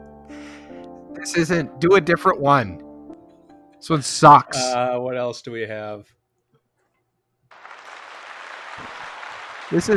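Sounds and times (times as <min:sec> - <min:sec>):
speech: 0:01.2 - 0:02.8, 0:03.8 - 0:06.2, 0:09.7 - 0:09.9
crowd applause sound effect: 0:07.5 - 0:09.9.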